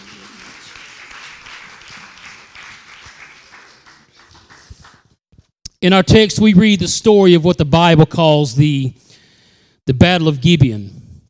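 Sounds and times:
audience hand clapping: 0:00.0 - 0:05.2
speech: 0:05.8 - 0:09.0, 0:09.9 - 0:11.0.

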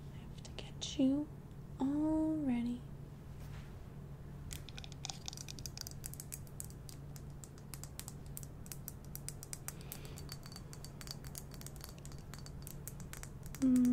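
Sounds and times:
low hum: 0:00.0 - 0:13.9
speech: 0:01.0 - 0:02.9
gentle hammer taps on a toy: 0:07.5 - 0:13.9.

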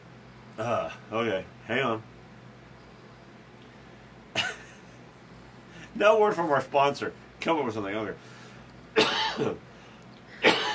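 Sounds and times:
speech: 0:00.6 - 0:02.1, 0:06.0 - 0:08.4, 0:09.4 - 0:09.7
person coughing: 0:04.4 - 0:04.7, 0:09.0 - 0:09.5, 0:10.4 - 0:10.7.

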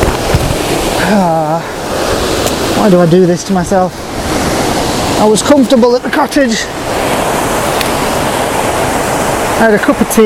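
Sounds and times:
water rushing down a slippery waterfall: 0:00.0 - 0:10.2
person's voice: 0:01.0 - 0:01.7, 0:02.8 - 0:04.0, 0:05.2 - 0:06.8, 0:09.6 - 0:10.2
speech: 0:01.1 - 0:01.4, 0:02.8 - 0:04.0, 0:05.2 - 0:06.8, 0:09.6 - 0:10.2.

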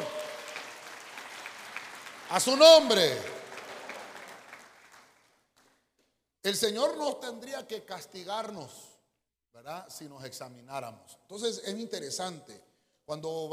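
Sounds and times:
audience clapping: 0:00.0 - 0:05.9
speech: 0:02.3 - 0:03.4, 0:06.5 - 0:08.9, 0:09.6 - 0:13.5.

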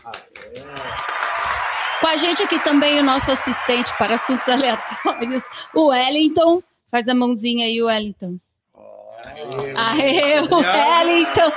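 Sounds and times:
clapping: 0:00.0 - 0:06.3, 0:09.4 - 0:11.5
speech: 0:02.0 - 0:08.5, 0:09.2 - 0:11.5
laughter: 0:09.2 - 0:11.5.

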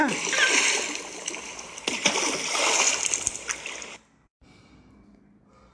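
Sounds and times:
boy falling headfirst into a water barrel used as an animal trough: 0:00.1 - 0:04.0.

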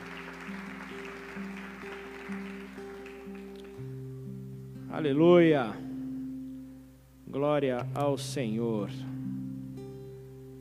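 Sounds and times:
audience clapping: 0:00.0 - 0:04.0
speech: 0:05.0 - 0:05.8, 0:07.3 - 0:09.1.

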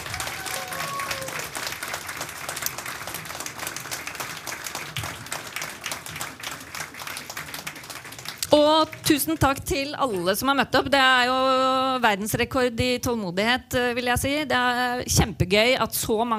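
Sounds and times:
audience applause after panel debate: 0:00.0 - 0:09.6
speech: 0:09.1 - 0:16.3.

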